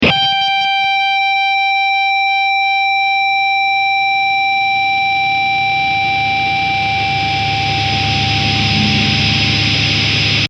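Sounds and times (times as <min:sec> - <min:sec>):
audio feedback: 0:00.0 - 0:10.4.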